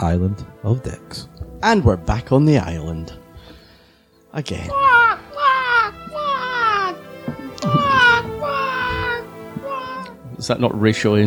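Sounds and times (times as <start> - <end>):
speech: 0.0 - 3.2, 4.4 - 5.1, 10.4 - 11.2
person imitating seagull cries: 4.7 - 10.2.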